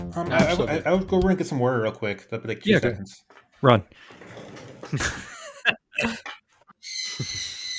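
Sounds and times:
speech: 0.1s - 4.3s, 4.9s - 5.3s
bird chirping in the room: 6.8s - 7.7s.

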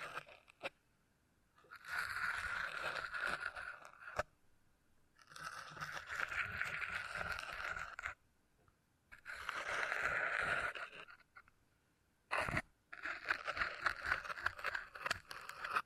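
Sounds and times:
beeswax being handled, crackly scraping: 0.0s - 0.8s, 1.6s - 4.3s, 5.2s - 8.2s, 9.1s - 11.5s, 12.3s - 15.8s.

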